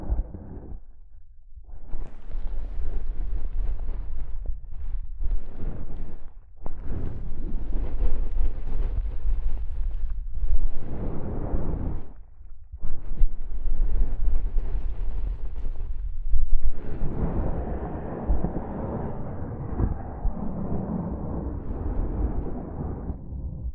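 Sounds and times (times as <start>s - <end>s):
soft fabric brushing against a microphone: 1.8s - 23.2s.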